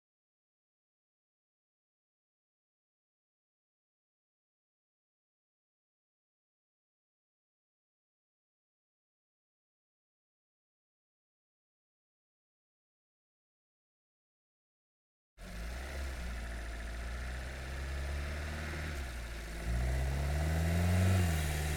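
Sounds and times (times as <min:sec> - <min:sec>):
VW Golf engine driving fast onboard: 0:15.4 - 0:21.7.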